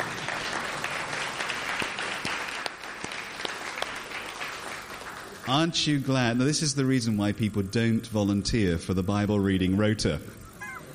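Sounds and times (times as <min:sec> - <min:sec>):
group applauding: 0:00.0 - 0:05.8
speech: 0:05.5 - 0:10.4.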